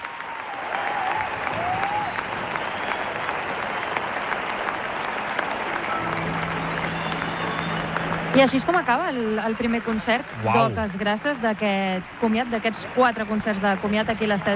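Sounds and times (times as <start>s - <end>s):
stadium crowd cheering and applauding after concert: 0.0s - 14.5s
whistles: 0.5s - 4.8s, 5.8s - 8.6s
speech: 8.4s - 14.5s.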